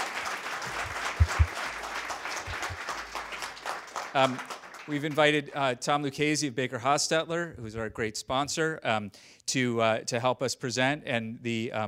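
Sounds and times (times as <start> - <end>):
audience applause: 0.0 - 5.2
speech: 4.2 - 11.8.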